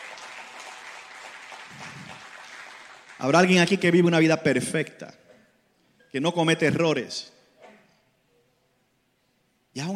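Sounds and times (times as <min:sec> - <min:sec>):
audience applause: 0:00.0 - 0:03.6
speech: 0:03.2 - 0:05.2, 0:06.1 - 0:07.3, 0:09.8 - 0:09.9.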